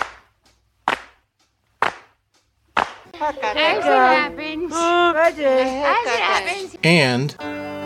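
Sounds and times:
clapping in time with one hand: 0:00.0 - 0:01.2, 0:01.8 - 0:02.2, 0:02.8 - 0:03.1
speech: 0:03.2 - 0:07.6.

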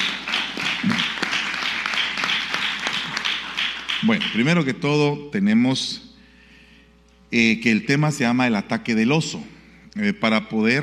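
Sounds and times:
audience applause: 0:00.0 - 0:04.6
speech: 0:04.0 - 0:06.0, 0:07.3 - 0:10.8.

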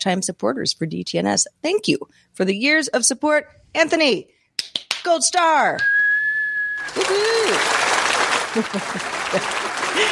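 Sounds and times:
speech: 0:00.0 - 0:06.0, 0:06.8 - 0:07.8, 0:08.5 - 0:10.1
cheering crowd applause sound effect: 0:06.8 - 0:10.1
laughter: 0:06.9 - 0:10.1.

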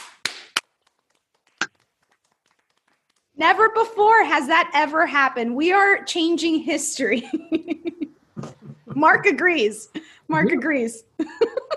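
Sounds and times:
sharp loud hand claps: 0:00.0 - 0:03.4
speech: 0:03.4 - 0:11.6
laughter: 0:07.2 - 0:09.4, 0:11.2 - 0:11.7.

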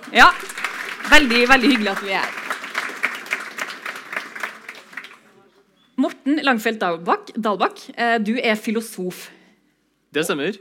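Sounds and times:
audience applause: 0:00.0 - 0:05.4
speech: 0:00.1 - 0:02.4, 0:06.0 - 0:09.4, 0:10.1 - 0:10.5.

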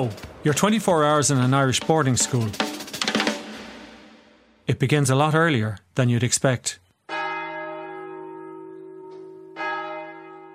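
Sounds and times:
speech: 0:00.0 - 0:02.8, 0:04.7 - 0:06.8
monastery prayer bell ringing: 0:07.1 - 0:10.5.

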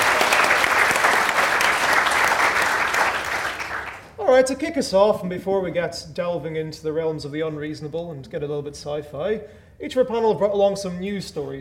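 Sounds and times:
live audience applause: 0:00.0 - 0:04.2
speech: 0:04.4 - 0:11.5.

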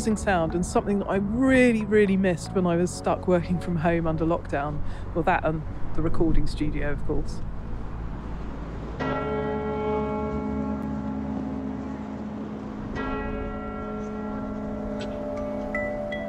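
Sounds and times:
speech: 0:00.0 - 0:07.5
St Paul's Cathedral bells striking: 0:09.0 - 0:16.2.

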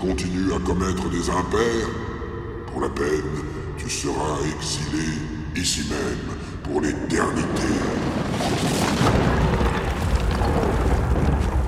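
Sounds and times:
speech: 0:00.0 - 0:02.1, 0:02.8 - 0:09.5
lightning bolt striking a mountain: 0:07.6 - 0:11.6.

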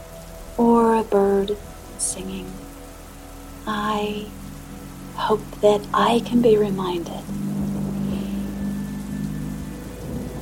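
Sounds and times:
speech: 0:00.6 - 0:02.7, 0:03.6 - 0:04.4, 0:05.2 - 0:07.4
loud motorcycle passing: 0:07.1 - 0:10.4.

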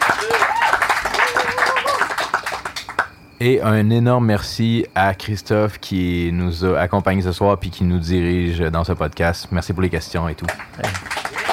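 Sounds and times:
cheering voices: 0:00.0 - 0:02.3
audience clapping: 0:00.0 - 0:03.1, 0:10.4 - 0:11.5
speech: 0:03.4 - 0:11.1.

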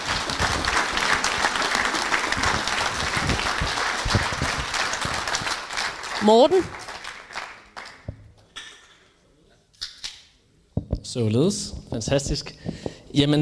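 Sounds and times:
audience applause: 0:00.0 - 0:08.1
speech: 0:06.2 - 0:06.8, 0:11.2 - 0:13.4.

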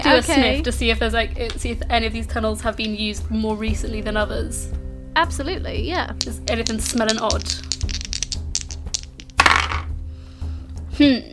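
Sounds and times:
speech: 0:00.1 - 0:07.7, 0:11.0 - 0:11.3
dice being rolled: 0:06.2 - 0:09.9.

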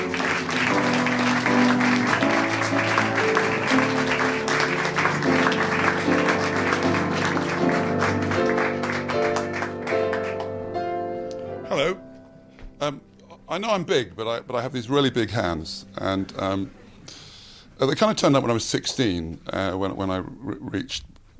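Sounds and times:
audience clapping: 0:00.0 - 0:11.5
music with sustained tones: 0:00.0 - 0:12.7
speech: 0:13.6 - 0:17.2, 0:17.8 - 0:21.3.

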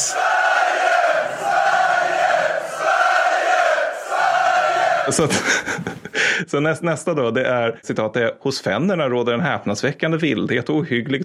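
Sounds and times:
supporters' section cheering and chanting in rhythmic waves: 0:00.0 - 0:05.4
laughter: 0:00.7 - 0:06.4
speech: 0:05.1 - 0:11.2.

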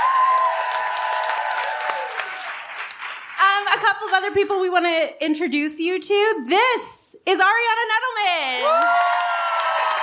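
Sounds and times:
audience round of applause: 0:00.0 - 0:03.6, 0:08.7 - 0:10.0
speech: 0:03.8 - 0:09.1.

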